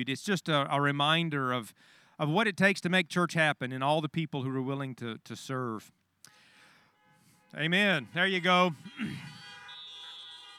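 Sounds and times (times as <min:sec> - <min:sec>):
speech: 0:00.0 - 0:06.0, 0:07.5 - 0:09.3
horn blast: 0:06.8 - 0:10.5.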